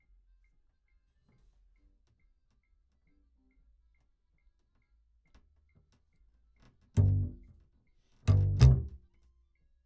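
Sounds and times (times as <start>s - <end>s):
bass: 7.0s - 7.6s, 8.2s - 9.1s.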